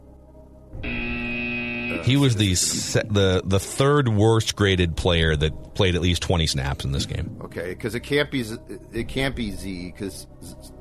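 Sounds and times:
game show wrong-answer buzzer: 0.8s - 3.0s
speech: 1.9s - 10.8s
low murmur: 2.0s - 9.6s.

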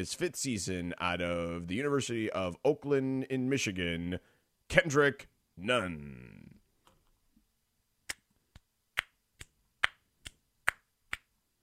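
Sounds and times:
speech: 0.0s - 6.6s
finger snapping instead of clapping: 8.1s - 11.3s.

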